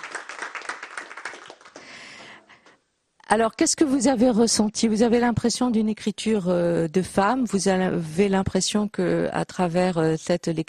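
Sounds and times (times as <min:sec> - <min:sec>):
small audience applause after a reading: 0:00.0 - 0:02.4
speech: 0:03.3 - 0:10.6.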